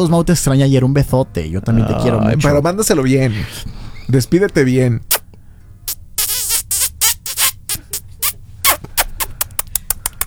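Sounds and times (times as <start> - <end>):
speech: 0.0 - 5.2
kissing and smacking mouth sounds used to call a dog: 5.9 - 10.2.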